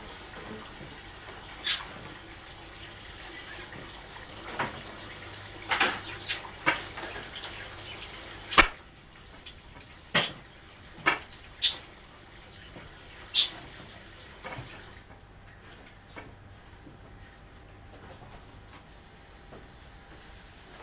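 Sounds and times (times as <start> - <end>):
running water while washing up dishes: 0.0 - 20.8.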